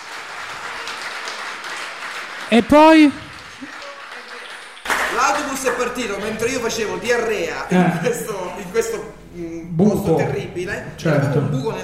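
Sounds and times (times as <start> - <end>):
crowd applauding: 0.0 - 6.7
speech: 2.5 - 3.7, 5.6 - 11.8.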